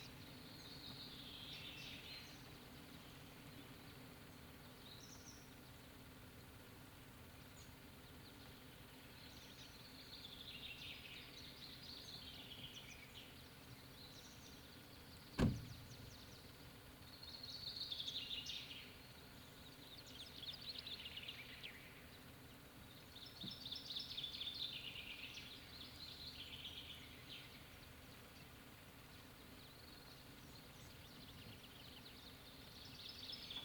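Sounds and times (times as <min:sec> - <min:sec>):
birds on a lake bank: 0:00.0 - 0:33.6
car by a lake bank: 0:15.3 - 0:16.4.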